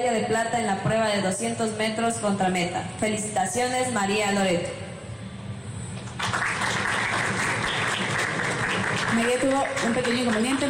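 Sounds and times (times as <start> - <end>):
speech: 0.0 - 4.8, 9.2 - 10.6
audience applause: 6.1 - 10.6.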